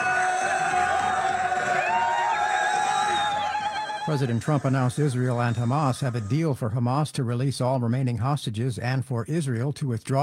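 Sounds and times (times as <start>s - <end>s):
crowd cheering in celebration: 0.0s - 6.5s
speech: 4.1s - 10.2s.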